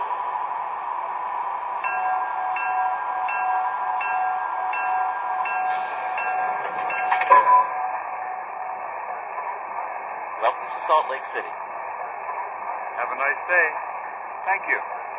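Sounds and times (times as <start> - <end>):
Transcontinental Limited train arriving on track one at Salt Lake City: 0.0 - 15.1
metallic clank: 5.5 - 7.8
speech: 10.9 - 11.7, 13.2 - 15.0.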